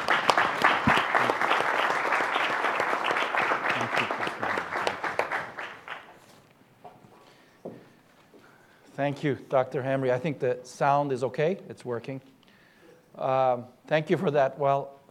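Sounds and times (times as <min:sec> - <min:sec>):
audience applauding welcoming a speaker to the stage: 0:00.0 - 0:06.4
speech: 0:09.0 - 0:12.3, 0:13.2 - 0:15.0.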